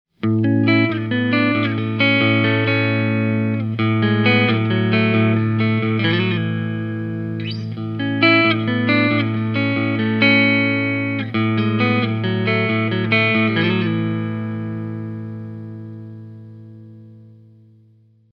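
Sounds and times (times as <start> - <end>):
clean split-coil humbucker electric guitar: 0.2 - 18.3.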